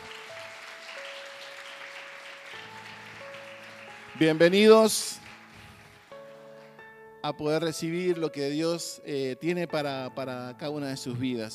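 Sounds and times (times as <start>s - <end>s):
church audience applauding: 0.0s - 6.8s
speech: 4.2s - 5.2s, 7.2s - 11.5s.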